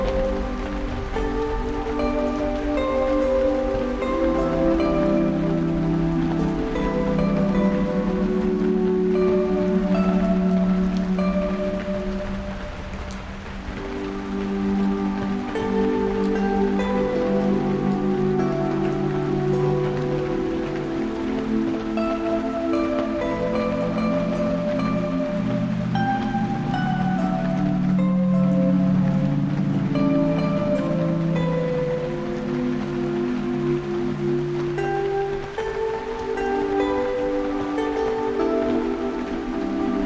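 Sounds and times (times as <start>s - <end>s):
nature sounds: 0.0s - 40.0s.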